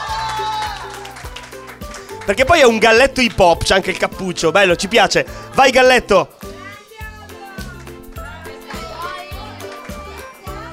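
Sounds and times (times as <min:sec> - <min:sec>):
audience applause: 0:00.0 - 0:02.6
speech: 0:02.3 - 0:06.4.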